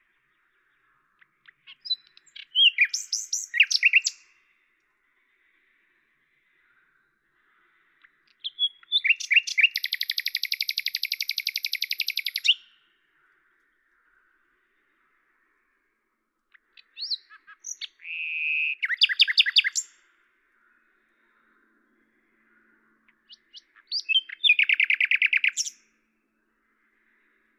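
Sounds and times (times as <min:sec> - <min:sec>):
common nightingale song: 0:00.0 - 0:04.6, 0:07.9 - 0:13.0, 0:16.5 - 0:20.1, 0:23.1 - 0:26.0.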